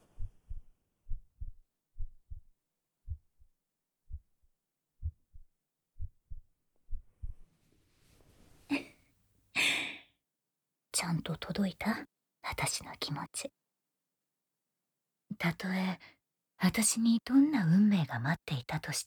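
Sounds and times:
pounding heartbeat: 0.1s - 7.4s
speech: 11.0s - 13.6s, 15.3s - 19.0s.

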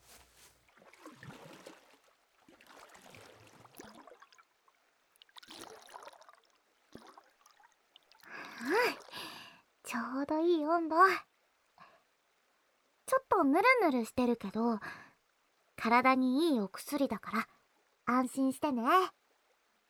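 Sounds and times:
water splash: 0.7s - 4.5s, 5.2s - 9.2s
river water poured to dilute a herbal medicine bath: 0.7s - 9.6s
speech: 9.9s - 11.3s, 13.4s - 15.0s, 15.8s - 17.5s, 18.1s - 19.2s.

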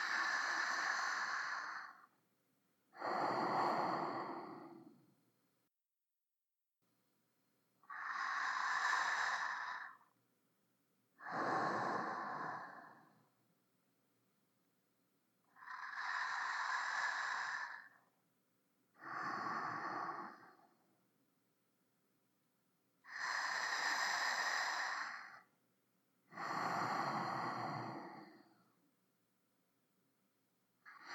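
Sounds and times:
sleeping breath: 0.0s - 2.1s, 3.0s - 5.1s, 7.8s - 10.1s, 11.2s - 13.4s, 15.5s - 18.1s, 18.9s - 20.9s, 23.0s - 25.5s, 26.3s - 28.8s, 30.9s - 31.1s.

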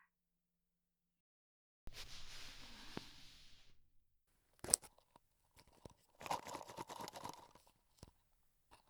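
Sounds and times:
ear cleaning sounds for sleep: 1.9s - 3.8s, 4.6s - 8.1s.

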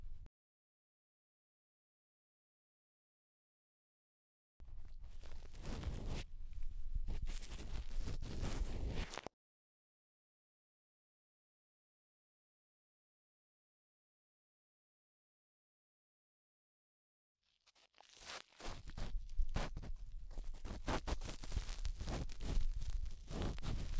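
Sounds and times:
cotton swab rubbing deep inside the right ear: 4.9s - 9.2s, 18.1s - 23.9s.

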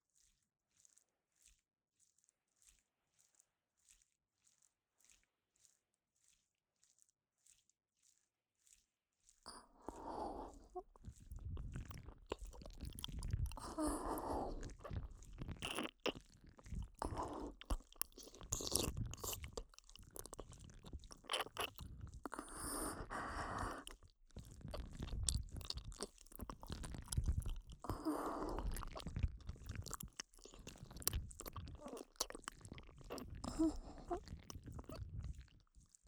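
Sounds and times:
ear licking: 9.5s - 36.0s.

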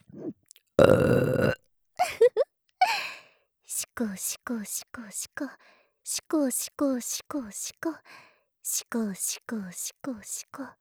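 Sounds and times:
burp: 0.0s - 1.6s
speech: 4.1s - 10.7s.

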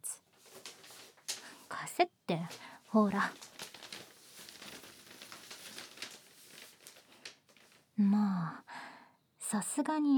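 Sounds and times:
paper bag holding a costume crinkling as it is handled: 0.3s - 1.8s, 2.4s - 8.0s
speech: 1.9s - 3.4s, 8.0s - 8.7s, 9.5s - 10.1s.

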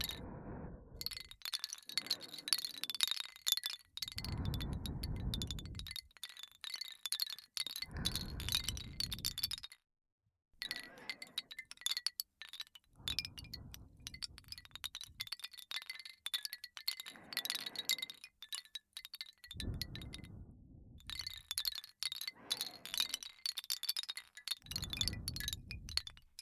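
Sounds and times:
wooden wind chime: 0.0s - 0.3s, 1.0s - 9.8s, 10.6s - 26.4s
person breathing: 0.0s - 3.0s, 4.0s - 6.0s, 7.8s - 9.5s, 10.6s - 11.8s, 12.9s - 15.6s, 16.9s - 18.7s, 19.4s - 23.7s, 24.6s - 26.4s.

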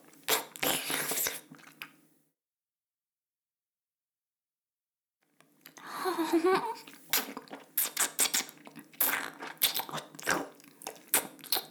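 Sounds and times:
ASMR ear licking sounds: 0.1s - 1.9s, 6.7s - 11.6s.

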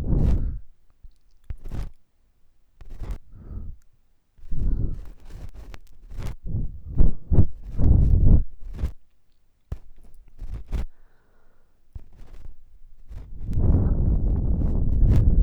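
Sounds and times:
ear blowing left and right: 0.0s - 0.6s, 4.5s - 5.1s, 6.4s - 8.8s, 13.1s - 15.4s
ear cleaning sounds: 1.4s - 2.0s, 2.8s - 3.8s, 4.4s - 9.0s, 9.7s - 11.0s, 11.9s - 15.4s.

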